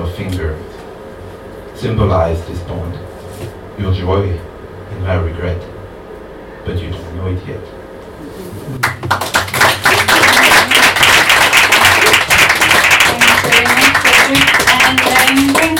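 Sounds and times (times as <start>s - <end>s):
speech: 0.0s - 0.8s, 1.8s - 5.8s, 6.6s - 7.8s
crowd applauding: 8.8s - 15.7s.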